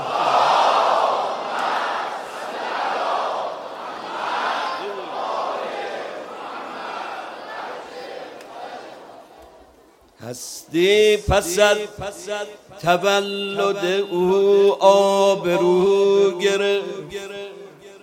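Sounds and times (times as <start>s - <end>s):
large crowd loudly chanting salawat in unison: 0.0s - 9.8s, 13.5s - 18.0s
speech: 10.4s - 17.2s.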